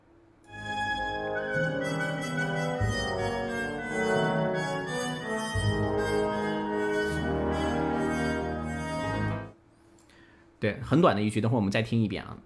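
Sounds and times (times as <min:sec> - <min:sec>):
muted trumpet playing a melody: 0:00.5 - 0:09.5
speech: 0:10.6 - 0:12.4.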